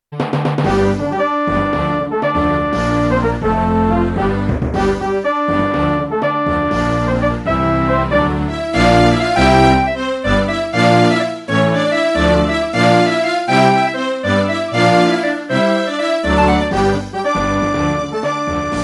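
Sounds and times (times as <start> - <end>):
buggy music: 0.1 - 18.8.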